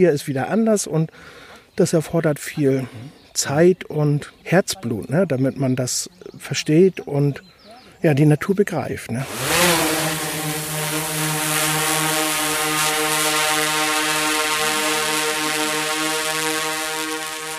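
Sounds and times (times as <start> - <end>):
speech: 0.0 - 9.8
drone flying: 9.2 - 17.5.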